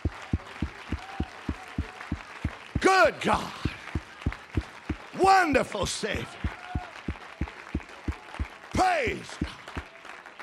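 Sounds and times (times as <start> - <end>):
church congregation clapping hands in unison: 0.0 - 10.4
speech: 2.9 - 3.6, 5.2 - 6.4, 8.9 - 9.4.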